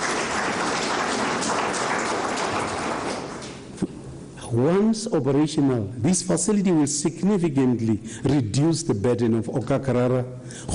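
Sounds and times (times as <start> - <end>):
crowd applause: 0.0 - 3.6
speech: 4.5 - 10.7.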